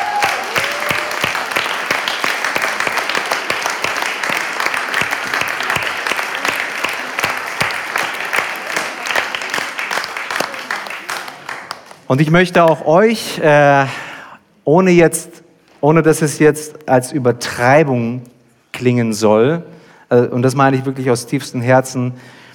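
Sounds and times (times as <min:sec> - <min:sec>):
audience applause: 0:00.0 - 0:12.8
speech: 0:12.1 - 0:14.0, 0:14.7 - 0:22.4.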